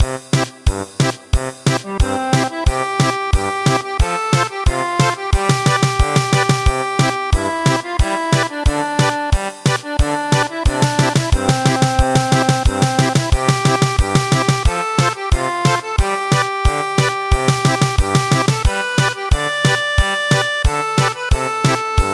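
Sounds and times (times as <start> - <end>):
German polka music: 0.0 - 22.1.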